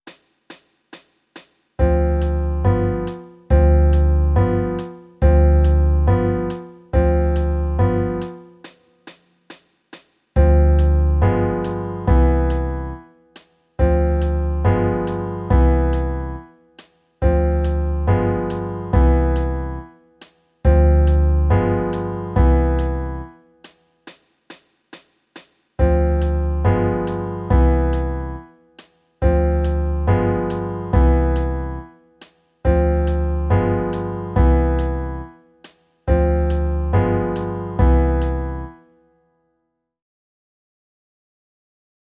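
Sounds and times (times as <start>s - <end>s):
jazz backing music: 1.8s - 8.8s, 10.4s - 13.1s, 13.8s - 16.6s, 17.2s - 20.0s, 20.7s - 23.4s, 25.8s - 28.5s, 29.2s - 32.0s, 32.7s - 35.5s, 36.1s - 38.8s.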